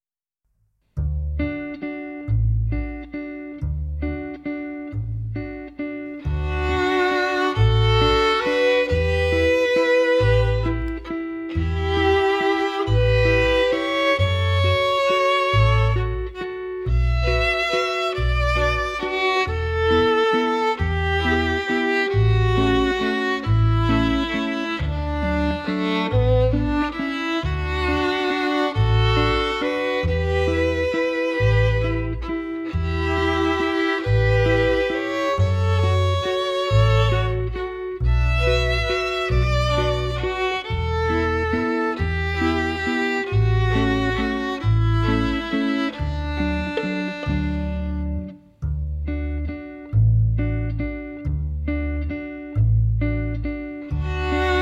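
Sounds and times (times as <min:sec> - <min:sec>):
cello playing a waltz: 0:01.0 - 0:54.6.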